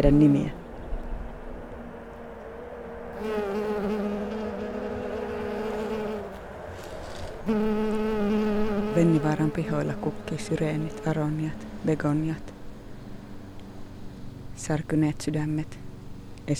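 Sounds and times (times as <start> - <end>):
speech: 0.0 - 0.6, 9.0 - 12.6, 14.6 - 15.8
bumblebee buzzing: 3.1 - 14.6.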